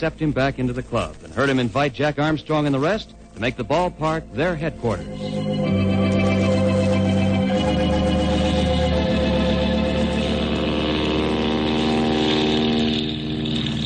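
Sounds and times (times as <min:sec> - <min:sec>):
speech: 0:00.0 - 0:05.4
passenger plane engines: 0:02.8 - 0:13.8.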